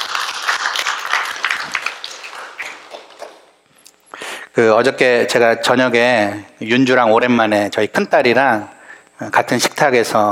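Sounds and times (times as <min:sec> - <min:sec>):
audience applause: 0:00.0 - 0:03.5
speech: 0:04.6 - 0:10.3.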